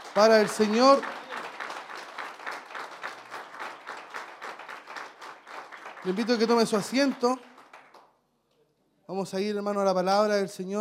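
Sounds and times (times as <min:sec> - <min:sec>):
audience applause: 0:00.0 - 0:08.1
speech: 0:00.2 - 0:01.2, 0:06.0 - 0:07.5, 0:09.1 - 0:10.7.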